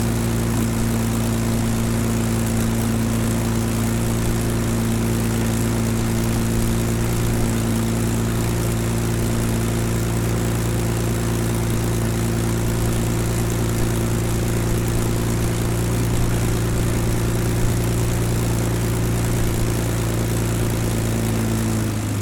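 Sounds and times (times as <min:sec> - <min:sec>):
Spitfire aircraft Rolls Royce Merlin engine operating: 0:00.0 - 0:22.2.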